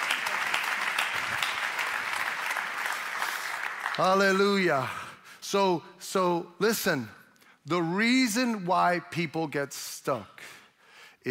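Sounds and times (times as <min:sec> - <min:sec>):
audience clapping: 0:00.0 - 0:04.9
speech: 0:04.0 - 0:10.6.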